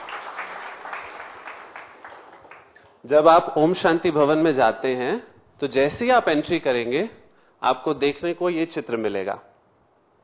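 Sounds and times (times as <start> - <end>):
audience clapping: 0.0 - 2.9
speech: 3.0 - 9.5.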